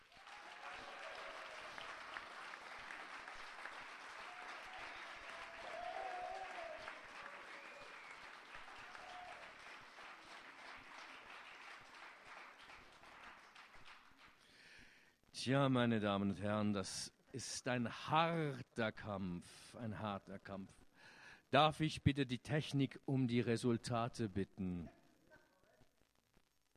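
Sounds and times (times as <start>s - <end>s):
faint cheering: 0.0s - 11.2s
audience applause: 0.0s - 14.4s
speech: 15.4s - 20.8s, 21.5s - 25.0s.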